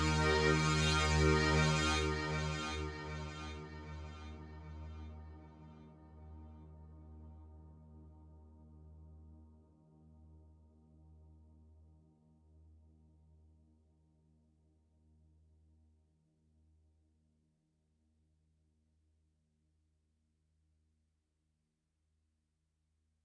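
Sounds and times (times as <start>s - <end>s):
OB fat synth pad: 0.0s - 5.2s.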